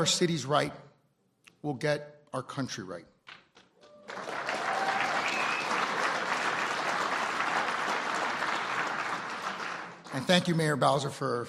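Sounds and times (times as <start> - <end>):
speech: 0.0 - 0.8, 1.6 - 3.4, 10.1 - 11.4
audience applause: 3.8 - 10.6.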